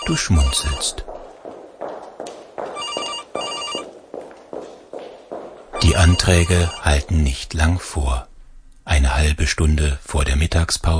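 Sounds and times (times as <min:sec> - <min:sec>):
telephone ringing: 0:00.0 - 0:01.0, 0:02.8 - 0:03.9, 0:05.8 - 0:07.1
speech: 0:00.1 - 0:01.1, 0:05.9 - 0:08.3, 0:08.9 - 0:10.9.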